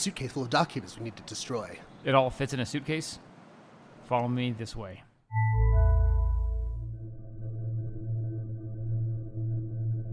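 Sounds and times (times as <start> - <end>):
speech: 0.0 - 3.3, 4.1 - 5.6
buzzing hum of a black hole's containment field: 5.6 - 10.1.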